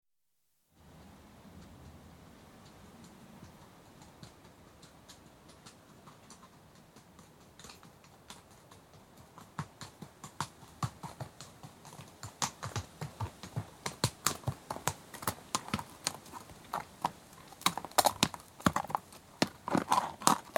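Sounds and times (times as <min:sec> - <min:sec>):
horse walking with hoof clops: 0:01.0 - 0:20.5.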